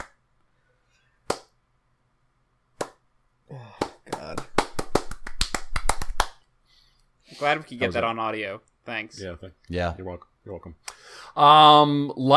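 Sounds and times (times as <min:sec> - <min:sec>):
golf clap: 0:01.3 - 0:01.5, 0:03.8 - 0:06.4
speech: 0:07.4 - 0:12.3.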